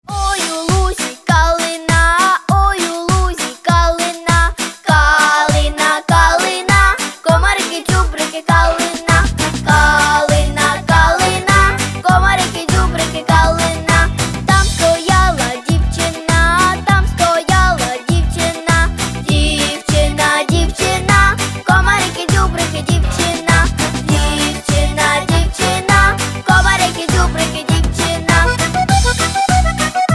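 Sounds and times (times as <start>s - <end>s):
karaoke singing: 0.1s - 30.0s.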